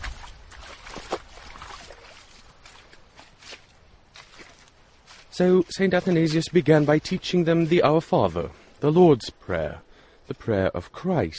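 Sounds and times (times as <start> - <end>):
footsteps wading through muddy puddles: 0.0 - 9.0
speech: 5.4 - 11.3.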